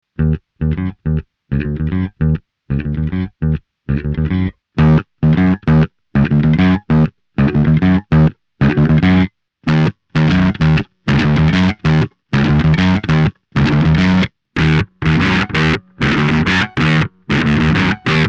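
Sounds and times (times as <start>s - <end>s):
bass: 0.0s - 18.2s.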